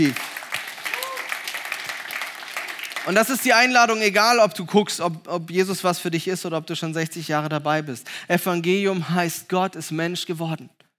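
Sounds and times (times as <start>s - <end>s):
speech: 0.0s - 0.2s, 3.1s - 10.8s
audience clapping: 0.0s - 3.7s.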